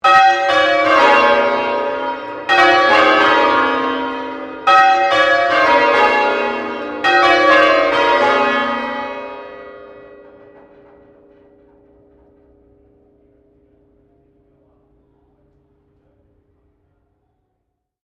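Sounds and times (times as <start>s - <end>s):
St Paul's Cathedral Melbourne bells ringing a sequence: 0.0s - 13.6s.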